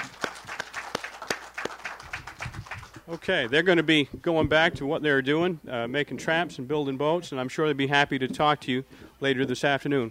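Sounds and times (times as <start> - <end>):
sparse clapping from a small group: 0.0 - 3.6
speech: 3.1 - 10.0.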